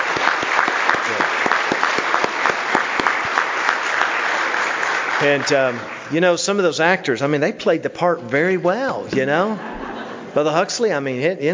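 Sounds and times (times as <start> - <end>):
audience applause: 0.0 - 6.6
speech: 5.2 - 9.7, 10.3 - 11.5
laughter: 9.2 - 10.8.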